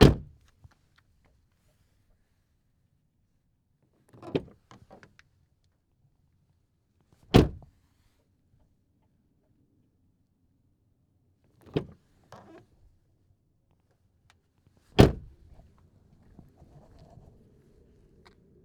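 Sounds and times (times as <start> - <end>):
car door opening and closing: 7.3 - 7.7, 15.0 - 15.4.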